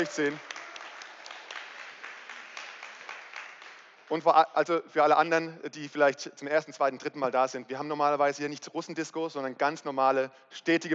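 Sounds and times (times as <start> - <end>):
speech: 0.0 - 0.5, 4.1 - 10.9
short audience applause: 0.0 - 4.1.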